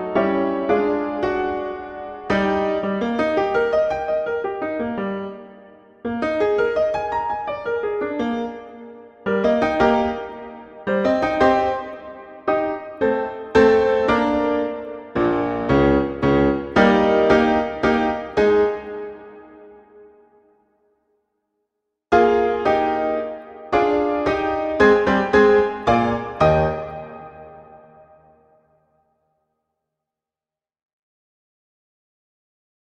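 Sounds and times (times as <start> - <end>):
pompous allegretto music: 0.0 - 19.8, 22.2 - 28.1.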